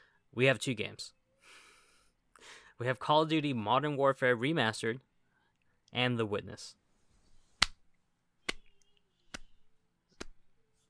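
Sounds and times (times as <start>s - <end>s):
speech: 0.4s - 1.2s, 2.4s - 5.1s, 5.9s - 6.8s
slow clap: 8.5s - 9.6s.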